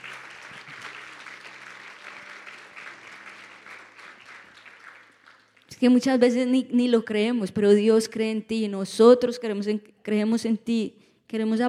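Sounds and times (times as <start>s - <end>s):
audience applause: 0.0s - 5.7s
speech: 5.8s - 11.6s.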